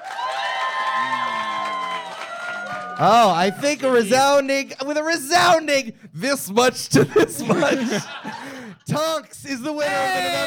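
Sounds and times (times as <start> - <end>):
crowd cheering and whooping: 0.0 - 4.0
clapping: 0.0 - 4.2
speech: 3.0 - 8.3, 9.0 - 10.4
laughter: 6.9 - 9.0.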